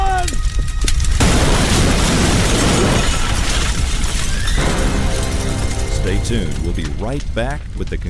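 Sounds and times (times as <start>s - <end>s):
debris shattering: 0.2s - 8.0s
propane tank explosion beside a burning ATV: 1.2s - 7.0s
speech: 6.3s - 8.0s.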